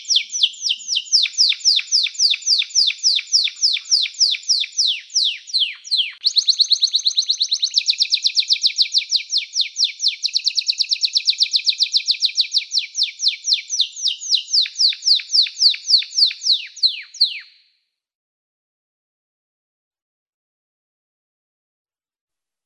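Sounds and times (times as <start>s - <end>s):
canary song with chirps and fast buzzing trill: 0.0s - 17.5s.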